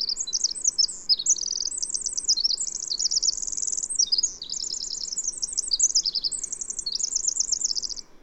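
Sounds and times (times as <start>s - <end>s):
bird song of fast high-pitched twittering trills: 0.0s - 8.1s.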